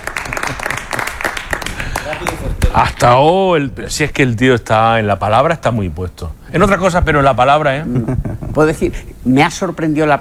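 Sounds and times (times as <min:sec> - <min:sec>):
audience applause at a fair theater show in Peal de Becerro: 0:00.0 - 0:03.2
laughter: 0:00.0 - 0:03.2, 0:07.6 - 0:09.2
speech: 0:02.1 - 0:10.2.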